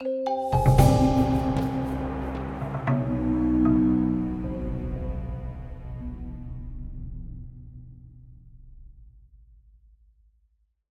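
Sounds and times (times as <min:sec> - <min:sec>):
death music stinger: 0:00.6 - 0:08.6.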